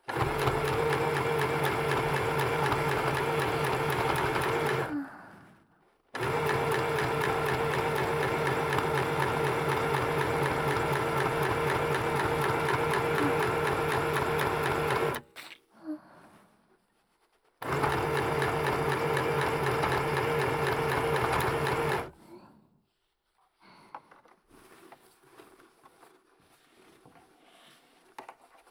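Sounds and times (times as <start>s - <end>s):
sewing machine sewing a costume: 0.0s - 5.0s, 6.2s - 15.3s, 17.6s - 22.2s.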